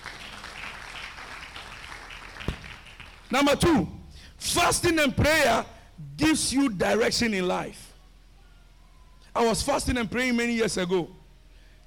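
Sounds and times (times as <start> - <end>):
audience clapping: 0.0 - 3.3
speech: 3.3 - 7.8, 9.4 - 11.2.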